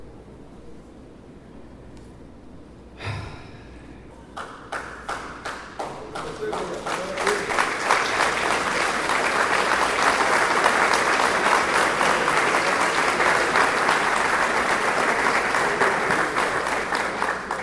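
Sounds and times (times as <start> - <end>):
audience applauding: 4.4 - 17.6.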